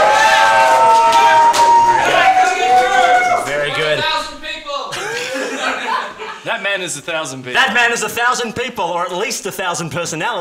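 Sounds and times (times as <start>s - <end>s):
live theatre audience cheering and making noise: 0.0s - 4.7s
laughter: 4.9s - 6.6s
speech: 6.8s - 10.3s.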